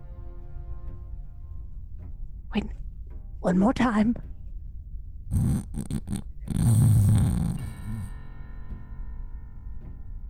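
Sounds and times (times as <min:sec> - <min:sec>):
speech: 0:02.5 - 0:02.8, 0:03.4 - 0:04.3, 0:05.9 - 0:06.3
person snoring: 0:05.3 - 0:08.1.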